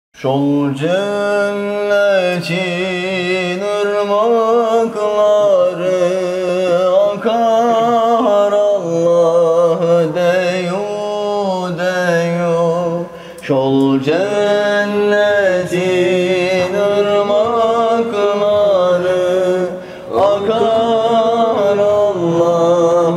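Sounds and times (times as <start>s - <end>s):
devotional hymn singing: 0.2s - 23.1s.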